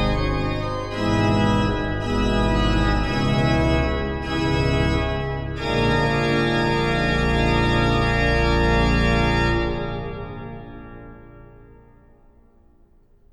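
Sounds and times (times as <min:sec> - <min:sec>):
organ concerto movement in D minor: 0:00.0 - 0:12.1.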